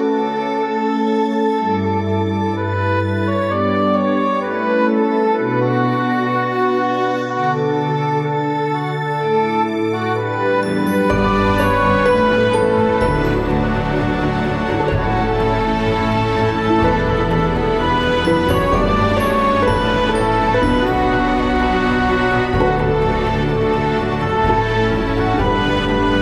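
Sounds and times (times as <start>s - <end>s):
large orchestra playing: 0.0s - 26.2s.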